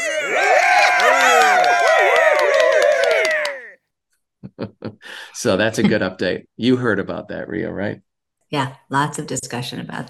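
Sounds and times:
cheers and applause sound effect: 0:00.0 - 0:03.8
speech: 0:05.4 - 0:10.0.

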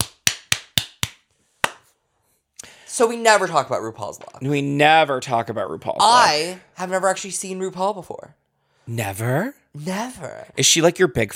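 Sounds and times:
sharp hand claps marking the end of a spoken story: 0:00.0 - 0:01.9
speech: 0:03.0 - 0:11.3.

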